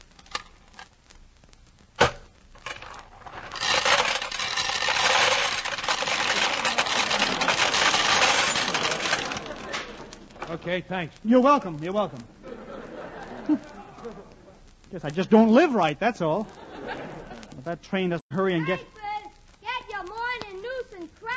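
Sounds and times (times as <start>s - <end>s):
vending machine mechanism rattling and whirring: 2.0s - 10.6s
coins dropping into a peanut vending machine: 3.5s - 9.8s
laughter: 6.5s - 10.7s, 12.1s - 14.6s, 16.3s - 17.8s
speech: 10.6s - 12.4s, 13.5s - 13.7s, 14.9s - 17.0s, 17.6s - 19.0s.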